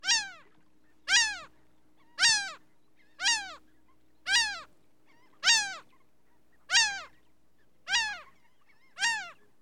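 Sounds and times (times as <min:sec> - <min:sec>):
laughing gull calling: 0:00.0 - 0:00.4, 0:01.1 - 0:01.5, 0:02.2 - 0:02.6, 0:03.2 - 0:03.6, 0:04.3 - 0:04.7, 0:05.4 - 0:05.9, 0:06.7 - 0:07.1, 0:07.9 - 0:08.3, 0:09.0 - 0:09.4.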